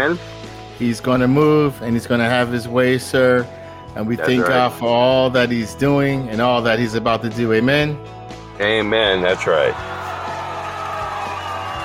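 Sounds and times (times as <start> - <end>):
speech: 0.0 - 9.9
live audience cheering: 8.6 - 11.8
whoops: 9.8 - 11.8.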